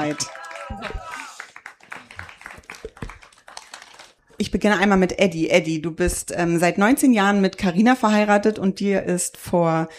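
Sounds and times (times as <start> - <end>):
speech: 0.0 - 1.1, 4.5 - 9.9
audience applause: 0.0 - 4.2.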